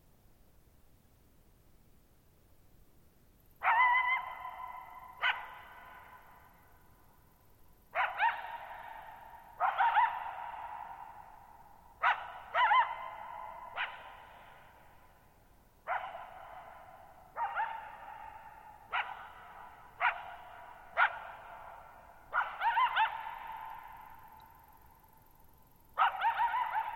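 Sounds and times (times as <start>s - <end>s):
coyote barking and yipping: 3.6s - 6.3s, 7.9s - 11.4s, 12.0s - 14.7s, 15.8s - 24.1s, 26.0s - 26.9s.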